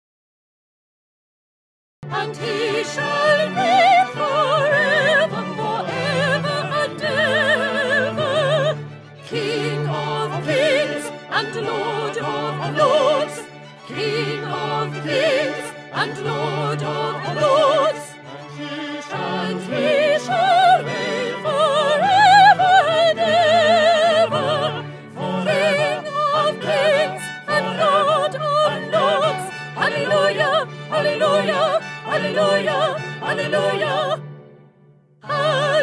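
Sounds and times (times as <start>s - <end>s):
soprano singing for audition practice: 2.1s - 34.2s, 35.2s - 35.8s.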